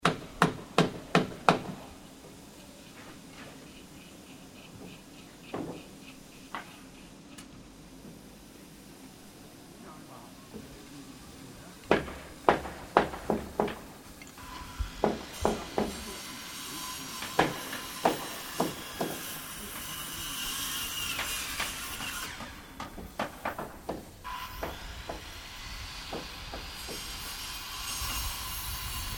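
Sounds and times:
builders working on a house at a construction site in Sannohe: 0.0s - 29.1s.

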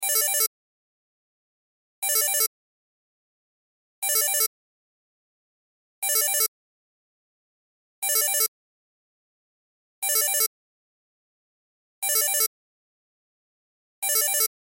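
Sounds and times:
cell phone ringtone: 0.0s - 0.5s, 2.0s - 2.5s, 4.0s - 4.5s, 6.0s - 6.5s, 8.0s - 8.5s, 10.0s - 10.5s, 12.0s - 12.5s, 14.0s - 14.5s.

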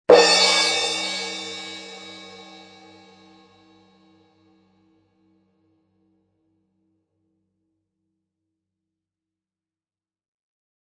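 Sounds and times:
cartoon drum and cymbal crash for a fall or hit: 0.1s - 3.6s.

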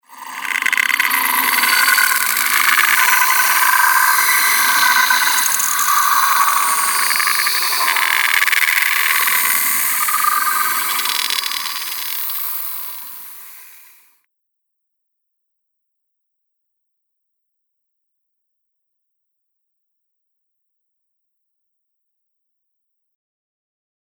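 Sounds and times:
frightening drone: 0.1s - 14.0s.

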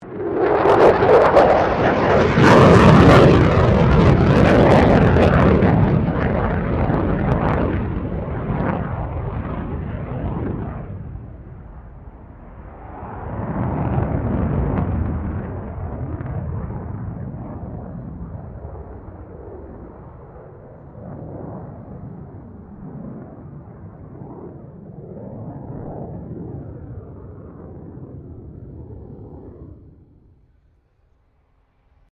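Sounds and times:
F16 Falcon aircraft maneuvering: 0.0s - 30.5s.

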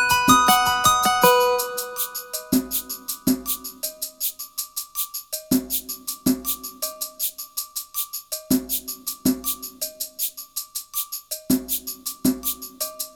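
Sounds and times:
guitar beat loop: 0.0s - 3.4s
soft high drums: 0.0s - 13.1s.

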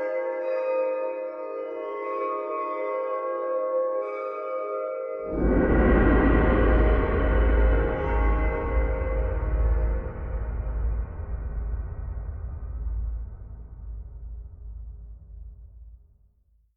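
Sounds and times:
chimes: 0.0s - 5.8s
bells: 0.0s - 11.1s
dreamy tonal drone texture: 0.0s - 14.9s
gongs: 5.2s - 13.6s.

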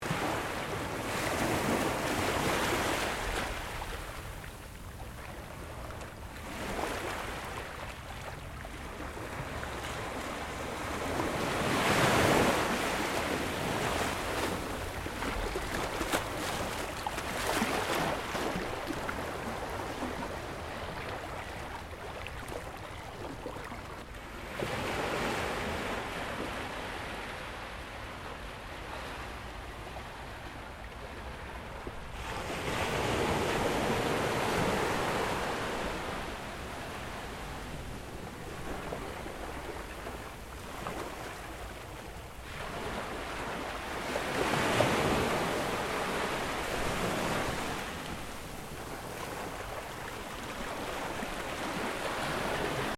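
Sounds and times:
gentle ocean waves on a sunny coastal beach: 0.0s - 52.9s.

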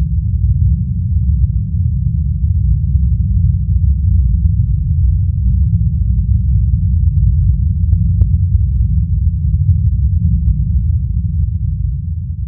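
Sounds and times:
spaceship interior rumbling drone: 0.0s - 12.4s.

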